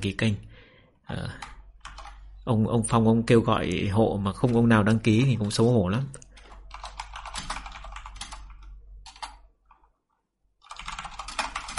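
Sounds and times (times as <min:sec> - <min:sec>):
speech: 0:00.0 - 0:00.5, 0:01.1 - 0:01.5, 0:02.4 - 0:06.2
rapid keyboard typing: 0:01.3 - 0:02.3, 0:04.3 - 0:10.0, 0:10.6 - 0:11.7.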